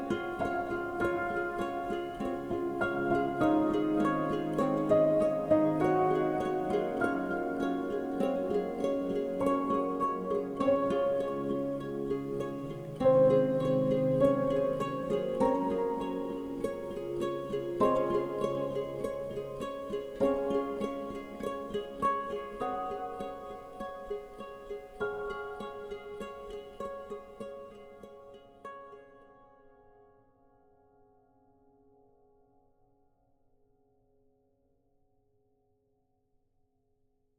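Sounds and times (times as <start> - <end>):
delicate sad to hopeful rhythmic ukulele: 0.0 - 28.7.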